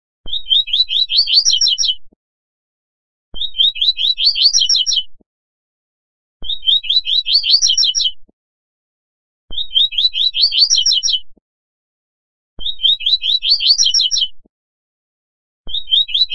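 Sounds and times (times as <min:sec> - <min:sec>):
Double-collared seedeater singing twittering phrase: 0:00.3 - 0:02.1, 0:03.4 - 0:05.2, 0:06.4 - 0:08.3, 0:09.5 - 0:11.2, 0:12.6 - 0:14.4, 0:15.7 - 0:16.3.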